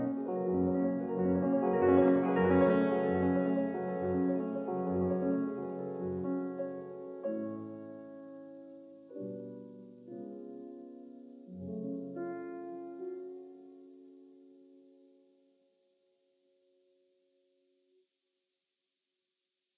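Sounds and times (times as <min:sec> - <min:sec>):
prelude in F sharp minor: 0:00.0 - 0:07.7.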